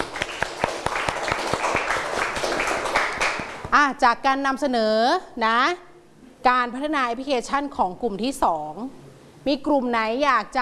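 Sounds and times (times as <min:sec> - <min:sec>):
classroom clapping: 0:00.0 - 0:03.7
speech: 0:03.8 - 0:10.5.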